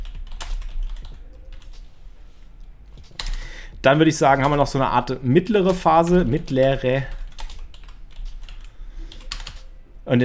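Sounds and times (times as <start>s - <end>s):
typing on a computer keyboard: 0.0s - 1.9s, 5.6s - 9.7s
speech: 3.8s - 7.2s.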